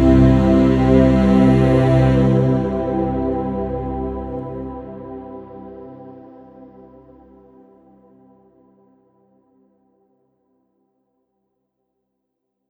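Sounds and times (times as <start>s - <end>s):
meditation music: 0.0s - 10.1s.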